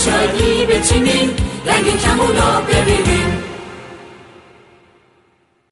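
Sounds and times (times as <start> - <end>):
happy children's song: 0.0 - 4.4.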